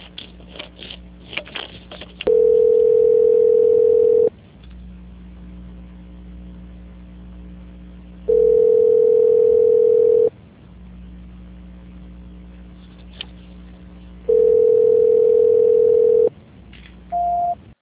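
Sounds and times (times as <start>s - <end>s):
low hum: 0.0s - 17.7s
telephone tones during call transfer: 2.3s - 4.3s, 8.3s - 10.3s, 14.3s - 16.3s, 17.1s - 17.6s.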